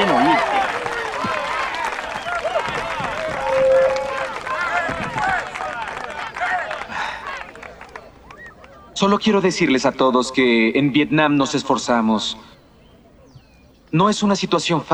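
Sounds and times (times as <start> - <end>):
audience applause: 0.0 - 13.3
laughter: 0.0 - 14.9
speech: 9.0 - 12.6, 13.9 - 14.9.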